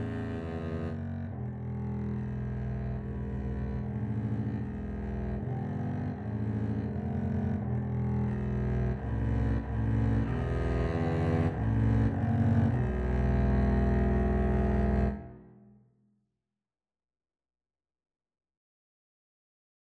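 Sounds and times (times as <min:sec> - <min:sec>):
double bass duet: 0:00.0 - 0:15.5.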